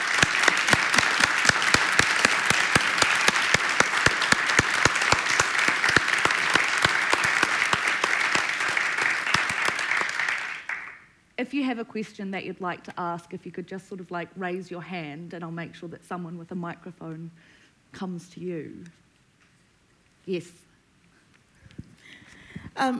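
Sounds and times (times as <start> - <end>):
audience applauding: 0.0 - 11.0
speech: 11.5 - 19.0, 20.2 - 20.6, 22.8 - 22.9.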